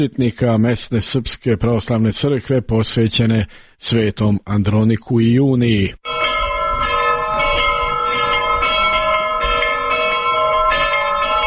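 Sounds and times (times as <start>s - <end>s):
speech: 0.0s - 6.2s
Orthodox church bell ringing: 6.0s - 11.4s.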